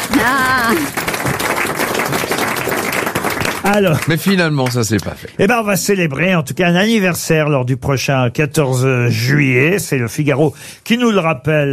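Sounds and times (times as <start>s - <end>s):
studio applause: 0.0s - 5.2s
speech: 3.6s - 11.7s.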